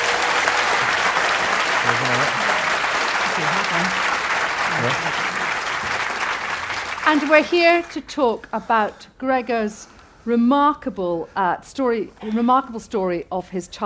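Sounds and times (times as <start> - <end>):
crowd applause: 0.0 - 7.9
speech: 7.1 - 13.8.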